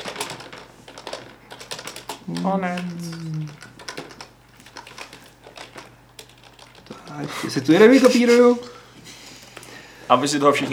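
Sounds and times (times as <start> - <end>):
keyboard typing a chat message: 0.0 - 7.7
speech: 2.3 - 3.2, 7.2 - 8.8, 10.1 - 10.7.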